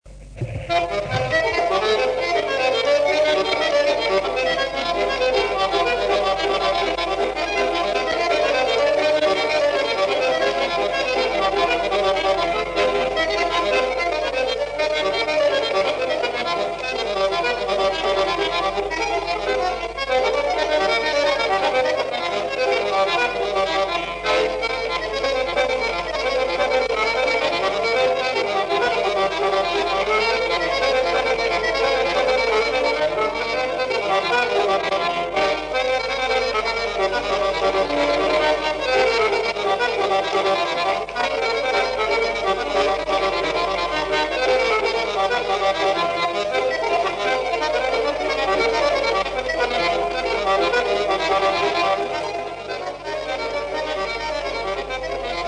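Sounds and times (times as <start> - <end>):
sarba on accordion: 0.1 - 55.4.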